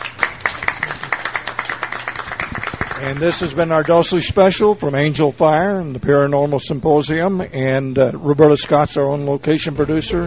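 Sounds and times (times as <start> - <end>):
audience applause at a paranormal symposium: 0.0 - 3.9
speech: 3.0 - 10.2.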